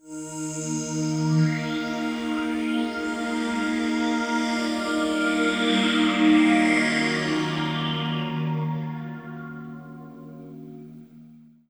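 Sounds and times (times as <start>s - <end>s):
hip hop and R&B synth pad: 0.0s - 11.4s.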